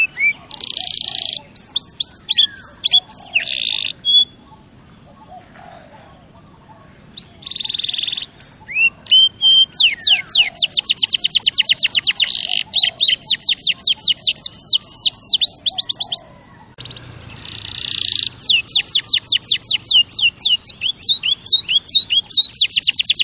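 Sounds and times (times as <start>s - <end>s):
canary singing: 0.0s - 23.2s.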